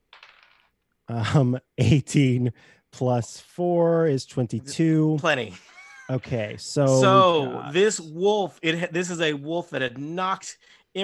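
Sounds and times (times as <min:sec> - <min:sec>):
dice rattling across a table: 0:00.0 - 0:00.9
speech: 0:01.1 - 0:11.0.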